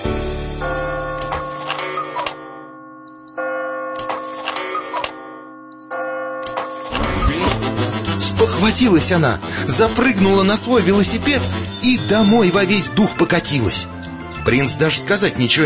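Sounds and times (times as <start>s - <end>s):
clock striking nine in the evening: 0.4s - 7.7s
speech: 8.6s - 15.6s.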